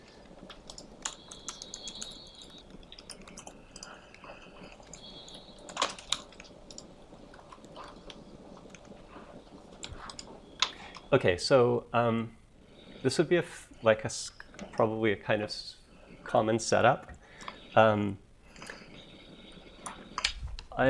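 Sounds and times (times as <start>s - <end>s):
typing on a computer keyboard: 0.5s - 8.9s
speech: 11.1s - 12.4s, 13.0s - 17.1s, 17.8s - 18.2s.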